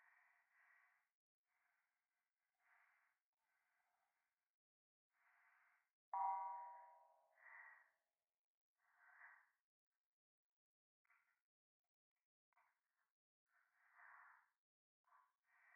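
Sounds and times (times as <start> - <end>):
breathing in the right ear: 0.0 - 4.4, 5.1 - 6.0, 6.8 - 8.1, 8.8 - 9.6, 12.5 - 15.7.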